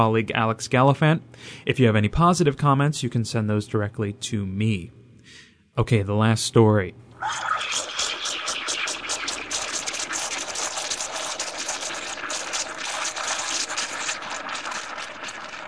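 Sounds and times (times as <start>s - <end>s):
speech: 0.0s - 7.9s
coffee machine running: 7.2s - 15.6s.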